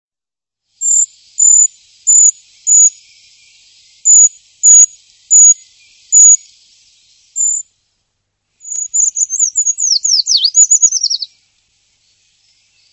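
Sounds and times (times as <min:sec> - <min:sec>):
bird twittering: 0:00.8 - 0:07.7, 0:08.6 - 0:11.4.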